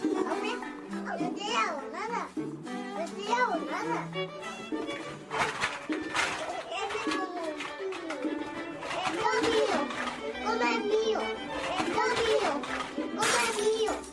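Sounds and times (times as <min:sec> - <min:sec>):
children's voices and chatter: 0:00.1 - 0:04.8, 0:06.3 - 0:14.1
drinking glass shattering: 0:13.2 - 0:14.1.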